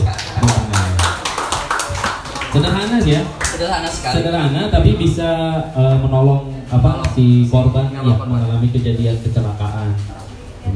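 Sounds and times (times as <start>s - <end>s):
audience clapping hands: 0.0s - 3.8s
speech: 2.6s - 10.7s.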